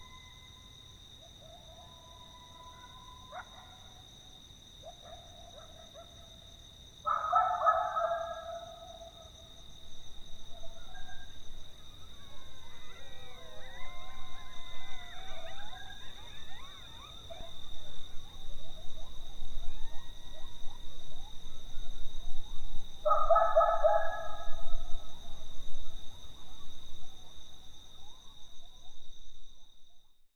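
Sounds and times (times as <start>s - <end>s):
coyotes howling: 0.0s - 29.0s.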